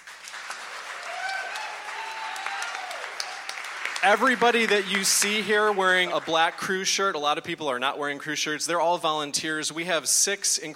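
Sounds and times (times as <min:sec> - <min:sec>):
audience applause: 0:00.0 - 0:06.8
speech: 0:04.0 - 0:10.7.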